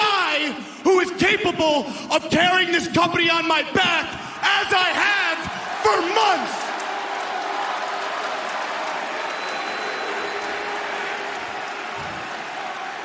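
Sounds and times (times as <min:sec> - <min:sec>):
speech: 0:00.6 - 0:06.6
crowd booing: 0:04.2 - 0:13.0
crowd clapping: 0:05.4 - 0:13.0.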